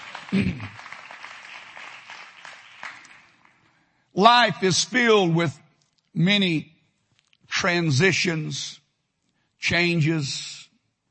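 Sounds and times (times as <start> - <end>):
audience applause: 0.0 - 3.7
speech: 0.3 - 0.8, 4.2 - 6.7, 7.6 - 8.8, 9.6 - 10.6.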